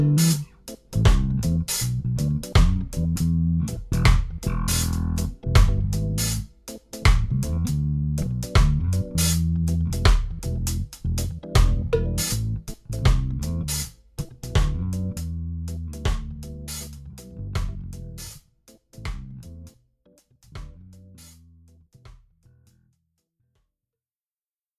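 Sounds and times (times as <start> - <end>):
80 bpm reggae music: 0.0 - 19.7.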